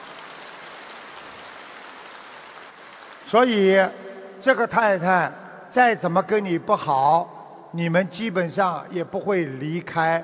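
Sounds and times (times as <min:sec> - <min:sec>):
crowd applause: 0:00.0 - 0:04.2
speech: 0:03.3 - 0:10.2.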